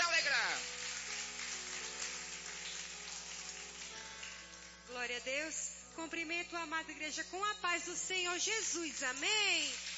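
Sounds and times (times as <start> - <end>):
church audience clapping: 0.0 - 4.9, 8.6 - 9.9
speech: 4.9 - 9.9.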